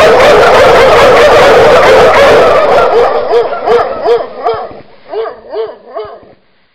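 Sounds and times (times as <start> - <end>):
dog: 0.1 - 6.3.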